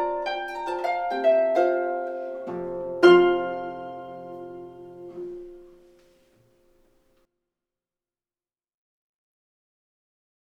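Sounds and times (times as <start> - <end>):
harpist playing a folk tune: 0.0 - 6.2.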